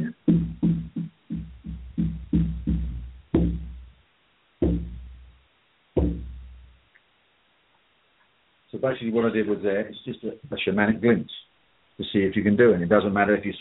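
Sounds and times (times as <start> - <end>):
shamanic frame drum beaten: 0.0 - 4.0, 4.6 - 5.4, 6.0 - 6.8
speech: 8.8 - 13.6.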